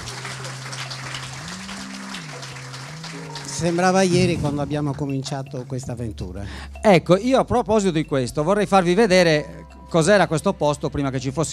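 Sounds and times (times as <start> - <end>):
audience applause: 0.0 - 5.0
speech: 3.6 - 11.5.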